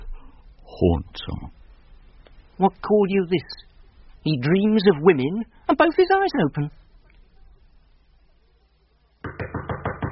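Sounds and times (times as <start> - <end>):
speech: 0.8 - 1.6, 2.6 - 6.8
knocking on a door: 9.2 - 10.0.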